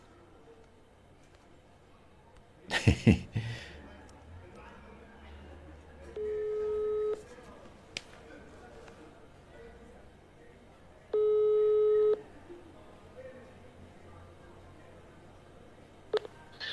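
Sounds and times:
faint noise: 0.0s - 16.7s
laughter: 2.7s - 3.8s
speech: 2.8s - 3.5s
telephone busy signal after dropped call: 6.2s - 7.2s, 11.2s - 12.2s.

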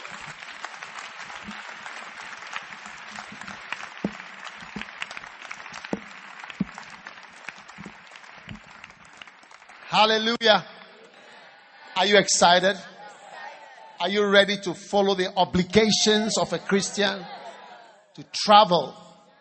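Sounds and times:
audience clapping: 0.0s - 11.2s
speech: 10.0s - 10.7s, 12.0s - 12.9s, 14.0s - 17.4s, 18.2s - 19.0s
laughter: 16.3s - 18.1s.

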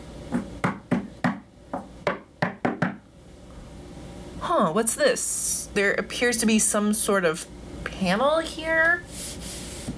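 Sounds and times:
knocking on walls: 0.3s - 3.0s
speech: 4.5s - 9.3s.

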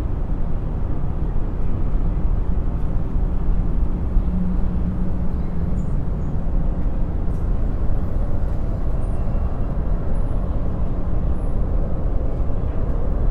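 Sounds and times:
dense city traffic rumble: 0.0s - 13.2s.

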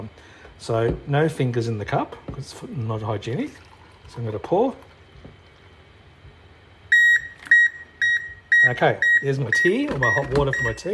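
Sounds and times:
speech: 0.0s - 5.4s, 8.7s - 10.9s
electric kettle beep: 6.9s - 10.9s.

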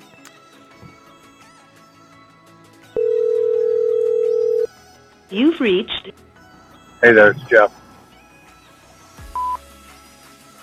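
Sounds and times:
telephone call tone before voicemail: 3.0s - 4.7s
speech: 5.3s - 6.3s, 7.0s - 7.8s.

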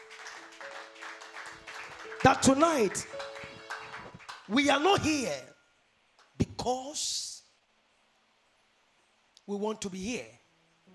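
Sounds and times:
audience clapping hands: 0.0s - 5.0s
speech: 2.2s - 3.2s, 4.5s - 5.5s, 6.6s - 7.2s, 9.5s - 10.9s.

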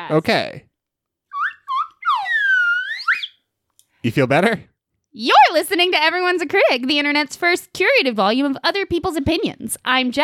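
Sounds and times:
speech: 0.1s - 0.7s, 4.0s - 10.2s
slide whistle: 1.3s - 3.4s.

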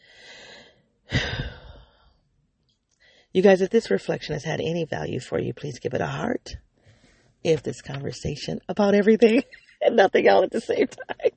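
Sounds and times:
deep breathing: 0.0s - 2.2s, 3.0s - 3.3s, 6.8s - 7.4s
speech: 3.4s - 6.7s, 7.4s - 11.3s.

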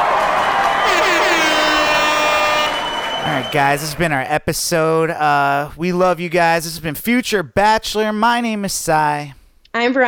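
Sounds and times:
applause: 0.0s - 4.0s
speech: 3.5s - 10.0s.

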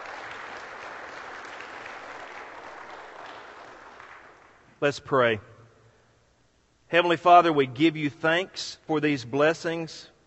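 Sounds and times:
audience applause: 0.0s - 4.6s
speech: 4.8s - 5.5s, 6.9s - 10.1s.

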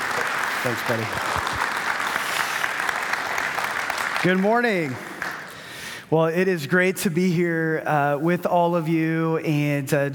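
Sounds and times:
audience applause welcoming a speaker to the stage: 0.0s - 5.8s
speech: 0.6s - 1.6s, 4.2s - 5.1s, 6.1s - 10.1s.

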